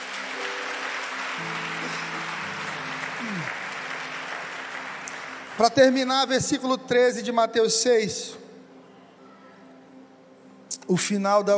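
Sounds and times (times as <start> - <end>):
audience applauding: 0.0 - 6.5
speech: 3.2 - 3.6, 5.6 - 8.4, 10.9 - 11.5.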